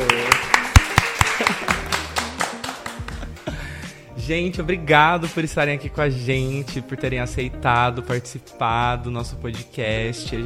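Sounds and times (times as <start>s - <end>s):
audience clapping: 0.0s - 3.5s
speech: 4.3s - 10.4s.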